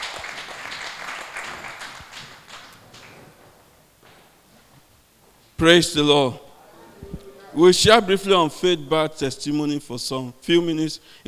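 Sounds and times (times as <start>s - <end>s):
audience clapping: 0.0s - 3.4s
speech: 5.6s - 6.4s, 7.6s - 11.2s.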